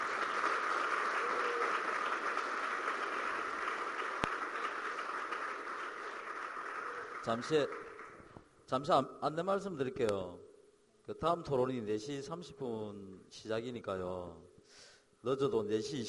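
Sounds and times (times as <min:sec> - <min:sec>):
audience applause: 0:00.0 - 0:08.3
speech: 0:07.2 - 0:07.8, 0:08.7 - 0:10.5, 0:11.1 - 0:16.0.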